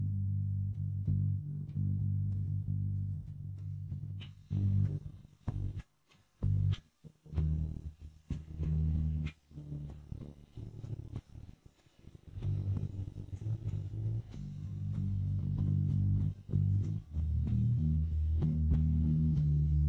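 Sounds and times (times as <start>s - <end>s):
bass in G minor: 0.0s - 19.8s.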